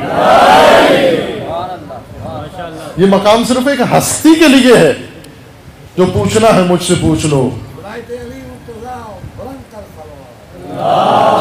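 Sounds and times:
crowd at a religious gathering answering a chant: 0:00.0 - 0:01.5, 0:10.6 - 0:11.3
speech: 0:03.0 - 0:05.1, 0:06.0 - 0:08.2, 0:10.8 - 0:11.3.

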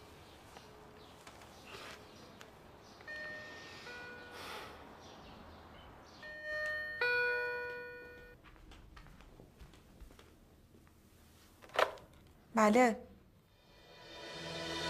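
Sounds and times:
doorbell chime: 0:03.1 - 0:04.4, 0:06.2 - 0:08.4
speech: 0:12.6 - 0:13.1.

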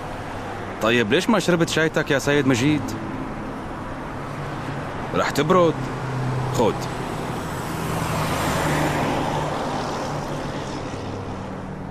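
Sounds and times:
traffic roaring past on a motorway: 0:00.0 - 0:11.8
speech: 0:00.8 - 0:03.1, 0:05.2 - 0:07.0.

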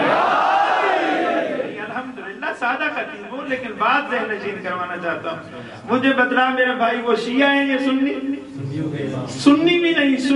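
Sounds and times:
crowd shouting a religious slogan at a sermon gathering: 0:00.0 - 0:01.8
speech: 0:02.7 - 0:10.3.

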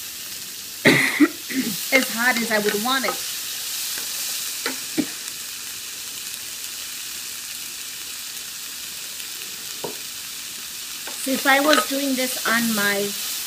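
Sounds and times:
onions frying on a small tabletop stove: 0:00.0 - 0:13.4
speech: 0:01.9 - 0:03.3, 0:11.3 - 0:13.3
utensil clinking while stirring the pan: 0:01.9 - 0:03.3, 0:11.1 - 0:12.0.

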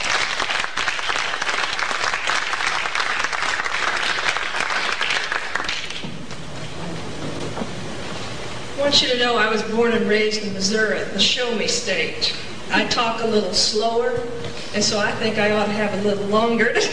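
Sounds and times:
audience applauding to welcome a research scientist to the podium: 0:00.0 - 0:06.0
speech: 0:08.9 - 0:16.9.

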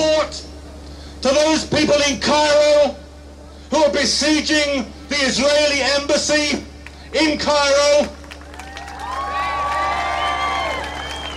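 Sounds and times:
speech: 0:01.2 - 0:03.0, 0:03.7 - 0:08.2
crowd cheering: 0:08.1 - 0:11.3.

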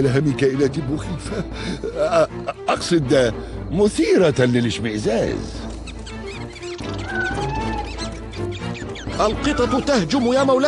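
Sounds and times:
speech: 0:00.0 - 0:05.7, 0:09.2 - 0:10.6
mouse squeaks: 0:05.2 - 0:10.6
gliding whistles: 0:06.1 - 0:09.9.

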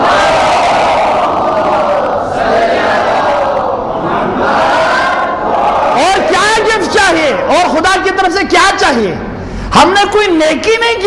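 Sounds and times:
crowd at a religious gathering shouting a slogan: 0:00.0 - 0:07.8
speech: 0:08.5 - 0:11.0.

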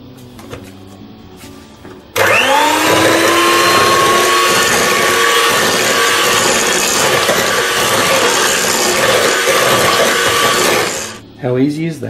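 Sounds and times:
electric mixer mixing jelly crystals: 0:02.2 - 0:11.2
speech: 0:11.6 - 0:12.0.

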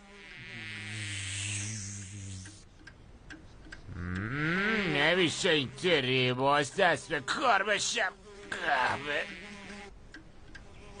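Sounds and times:
bee buzzing: 0:00.0 - 0:02.7, 0:03.9 - 0:10.0, 0:10.6 - 0:10.9
light ticks: 0:02.4 - 0:04.3, 0:09.7 - 0:10.9
speech: 0:05.2 - 0:09.4.

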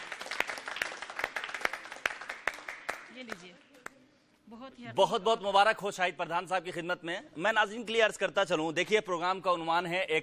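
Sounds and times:
audience applause: 0:00.0 - 0:03.2
speech: 0:04.5 - 0:10.2.

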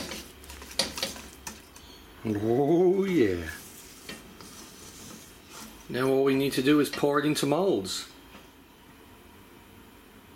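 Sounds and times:
cocoa powder and milk powder stirred together in a bowl: 0:00.0 - 0:02.0, 0:03.0 - 0:06.0
speech: 0:02.2 - 0:03.6, 0:05.9 - 0:08.1.

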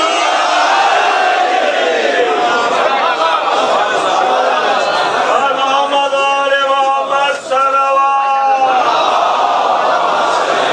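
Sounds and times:
crowd shouting a religious slogan: 0:00.0 - 0:05.3, 0:07.0 - 0:10.7
laughter: 0:02.2 - 0:05.9, 0:09.1 - 0:10.7.

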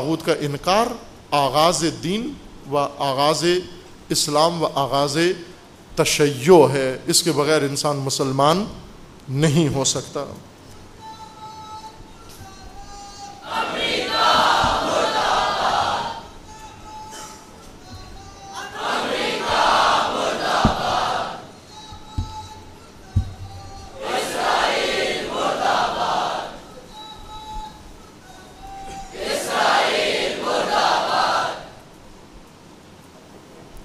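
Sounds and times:
speech: 0:00.0 - 0:10.5
large crowd chanting a slogan at a religious gathering: 0:13.4 - 0:16.3, 0:18.5 - 0:21.6, 0:22.2 - 0:26.7, 0:29.1 - 0:31.8
sharp thumps: 0:14.0 - 0:15.8, 0:17.8 - 0:24.5.

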